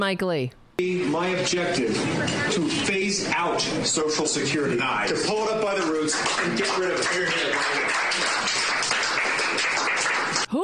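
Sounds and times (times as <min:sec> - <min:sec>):
speech: 0:00.0 - 0:09.7
clapping: 0:05.4 - 0:10.5.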